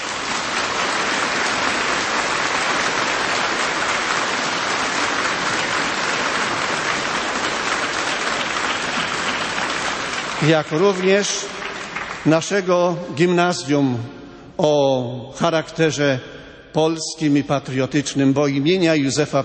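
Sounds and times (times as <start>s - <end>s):
audience applause: 0.0s - 12.6s
speech: 10.4s - 11.6s, 12.2s - 19.4s.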